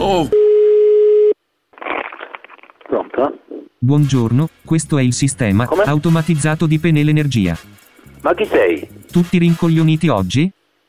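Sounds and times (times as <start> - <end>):
speech: 0.1 - 0.4, 3.2 - 10.6
telephone busy signal after dropped line: 0.3 - 1.4
rough crackly noise: 1.7 - 3.8.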